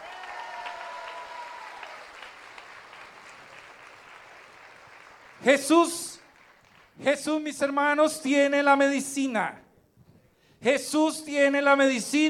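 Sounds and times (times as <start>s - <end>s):
audience applause: 0.0s - 7.0s
speech: 5.4s - 6.0s, 7.0s - 9.6s, 10.6s - 12.2s.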